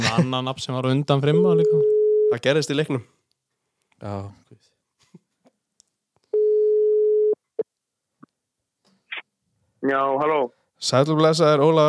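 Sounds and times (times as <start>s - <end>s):
speech: 0.1s - 3.2s, 4.0s - 4.7s, 9.8s - 11.8s
telephone ringback tone on a call: 6.4s - 7.4s.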